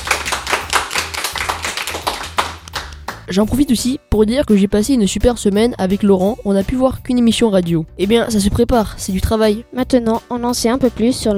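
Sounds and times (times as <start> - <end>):
applause, clapping hands: 0.0 - 3.3
speech: 3.3 - 11.3.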